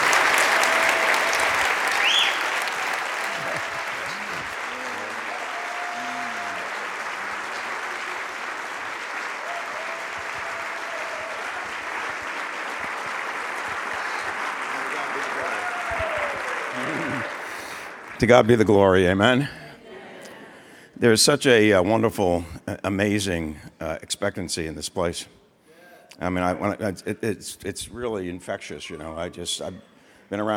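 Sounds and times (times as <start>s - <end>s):
standing church congregation applauding as a pastor comes up: 0.0s - 19.5s
speech: 18.2s - 19.6s, 21.0s - 25.4s, 26.1s - 30.5s.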